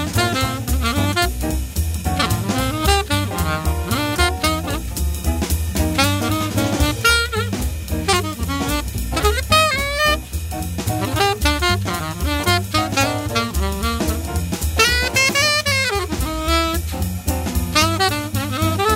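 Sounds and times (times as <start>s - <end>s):
vintage King 613 alto saxophone with hard rubber mouthpiece: 0.0s - 18.9s.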